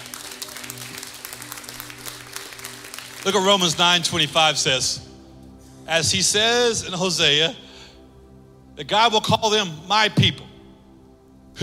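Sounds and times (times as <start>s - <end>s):
audience hand clapping: 0.0s - 4.3s
speech: 3.2s - 5.1s, 5.9s - 7.6s, 8.8s - 10.5s.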